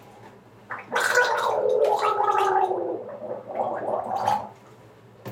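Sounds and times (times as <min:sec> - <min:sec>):
gargling water: 0:00.7 - 0:04.6.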